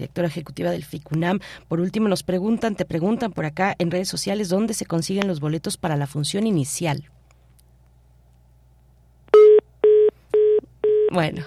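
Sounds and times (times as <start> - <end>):
speech: 0.0 - 7.2, 11.1 - 11.4
telephone busy tone beeps after a dropped call: 9.4 - 11.2.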